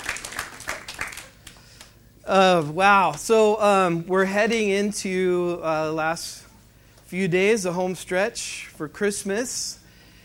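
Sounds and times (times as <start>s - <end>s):
weak applause: 0.0s - 1.6s
speech: 2.3s - 6.5s, 7.1s - 9.8s.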